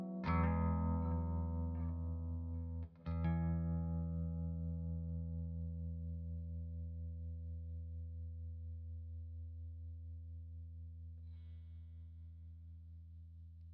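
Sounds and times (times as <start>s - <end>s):
guitar: 0.0s - 8.5s.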